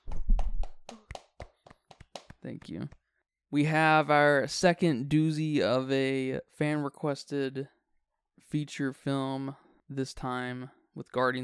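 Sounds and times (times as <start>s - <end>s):
hands clapping: 0.0s - 3.1s
speech: 2.4s - 7.8s, 8.5s - 11.4s.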